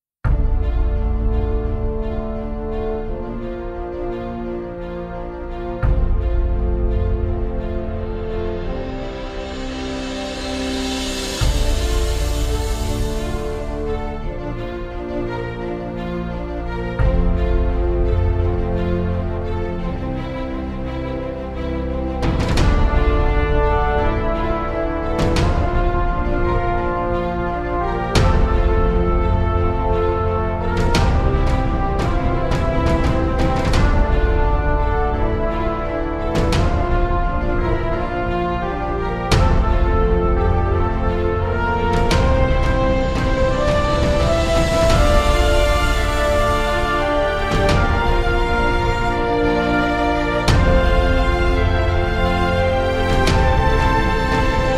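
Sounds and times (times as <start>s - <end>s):
epic cinematic action background music for videos: 0.2s - 54.7s.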